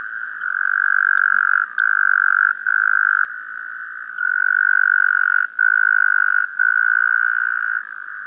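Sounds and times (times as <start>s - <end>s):
Taipei tree frog trilling: 0.0s - 8.2s.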